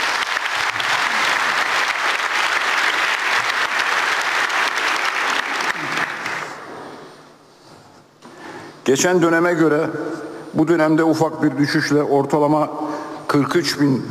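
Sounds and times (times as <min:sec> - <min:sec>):
audience applause: 0:00.0 - 0:06.7
speech: 0:08.9 - 0:14.0.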